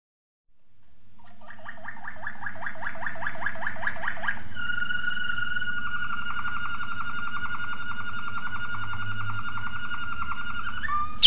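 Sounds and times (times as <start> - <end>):
Waterslager canary singing: 1.2 - 11.2.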